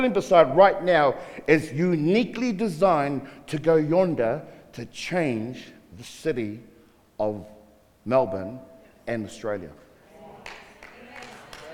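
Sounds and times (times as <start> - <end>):
speech: 0.0 - 9.8
half-hearted audience clapping: 10.4 - 11.7.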